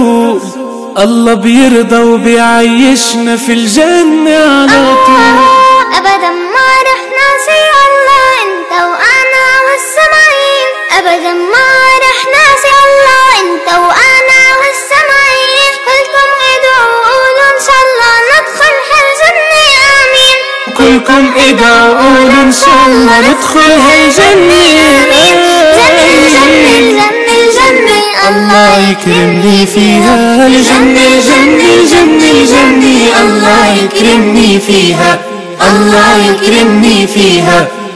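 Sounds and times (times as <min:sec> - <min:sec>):
person singing an Arabic nasheed: 0:00.0 - 0:37.9.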